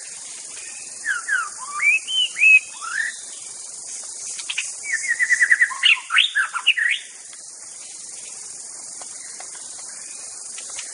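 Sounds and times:
continuous high insect drone: 0:00.0 - 0:10.9
white-rumped shama song: 0:00.5 - 0:03.3, 0:04.4 - 0:07.2.

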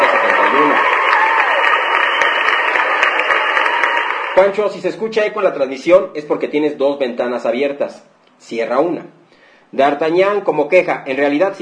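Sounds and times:
applause: 0:00.0 - 0:04.7
speech: 0:04.4 - 0:11.5.

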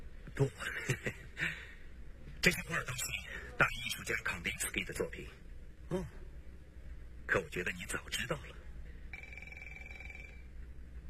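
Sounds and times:
steady low hum: 0:00.0 - 0:11.0
speech: 0:00.4 - 0:01.6, 0:02.4 - 0:06.2, 0:07.3 - 0:08.6
telephone ringing for a business call: 0:09.1 - 0:10.5.

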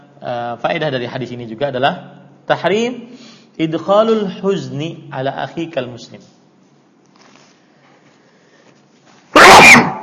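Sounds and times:
speech: 0:00.2 - 0:06.4
sneeze: 0:09.3 - 0:10.0.

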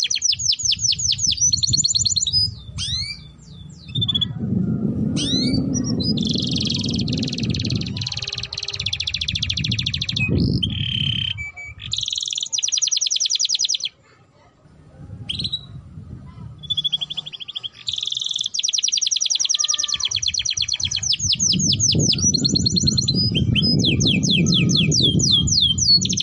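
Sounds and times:
domestic canary song: 0:00.0 - 0:14.1, 0:14.7 - 0:26.2
low rumble: 0:01.6 - 0:11.5, 0:14.6 - 0:17.3.

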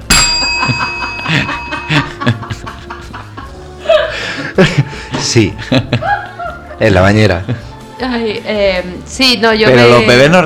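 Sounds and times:
bell rung on cue: 0:00.0 - 0:02.7
laughter: 0:00.4 - 0:07.7
speech: 0:04.6 - 0:06.2, 0:06.8 - 0:10.4.

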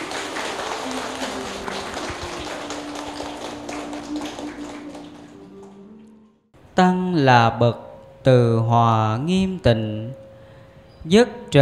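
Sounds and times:
audience applause: 0:00.0 - 0:05.8
speech: 0:06.8 - 0:10.2, 0:11.0 - 0:11.6.

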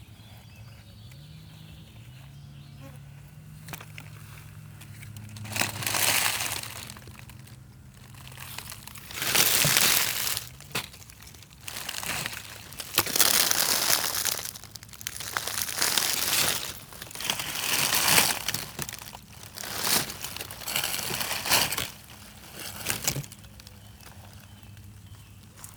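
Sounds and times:
grasshoppers hopping with dry ticks and crackles: 0:05.3 - 0:25.6.

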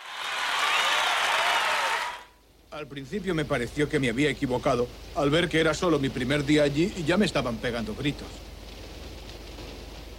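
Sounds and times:
audience applause: 0:00.0 - 0:02.3
speech: 0:02.8 - 0:08.5.

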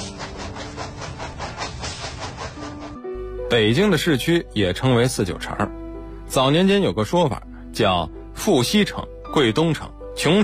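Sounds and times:
southbound train wheels clattering on rails: 0:00.0 - 0:03.1
southbound train rumbling and hissing: 0:00.0 - 0:04.8
speech: 0:03.5 - 0:10.4.

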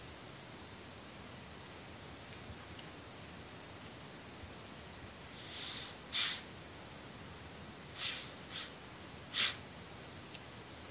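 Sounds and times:
faint steady hiss: 0:00.0 - 0:10.8
deep breathing in and out during a guided meditation: 0:05.3 - 0:06.5, 0:07.9 - 0:09.6.

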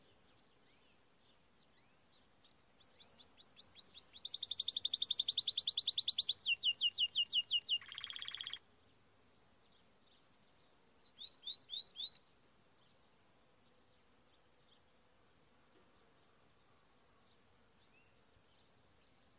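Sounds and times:
canary singing: 0:02.8 - 0:08.6, 0:11.0 - 0:12.2.

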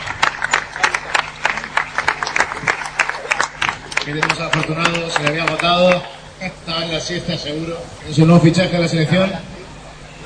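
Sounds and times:
scattered handclaps from a small group applauding a prize winner: 0:00.0 - 0:06.2
speech: 0:04.0 - 0:09.5.

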